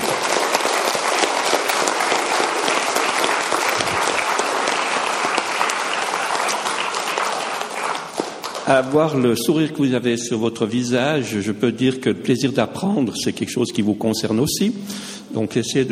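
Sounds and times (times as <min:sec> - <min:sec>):
audience applause: 0:00.0 - 0:09.3
speech: 0:08.7 - 0:15.8.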